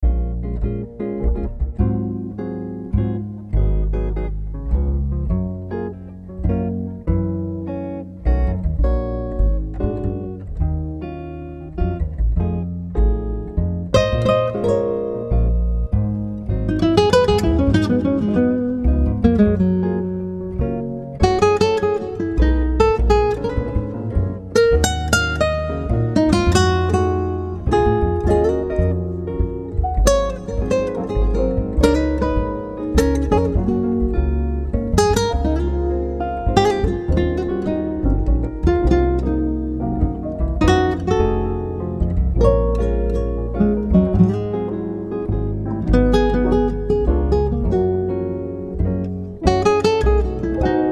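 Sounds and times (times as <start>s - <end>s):
smooth dinner jazz ambiance: 0.0s - 50.9s.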